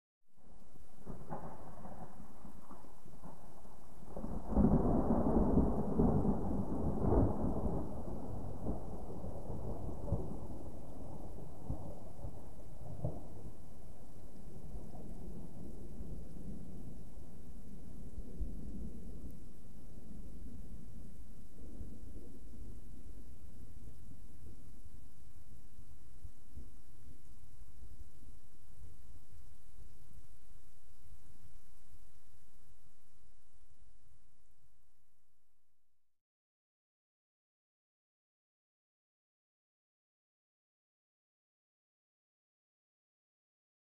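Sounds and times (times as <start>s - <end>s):
distant thunder: 0.7s - 23.2s.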